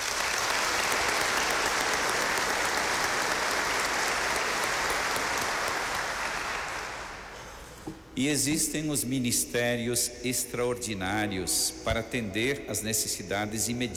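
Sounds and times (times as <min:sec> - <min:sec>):
applause: 0:00.0 - 0:07.3
speech: 0:08.2 - 0:13.9.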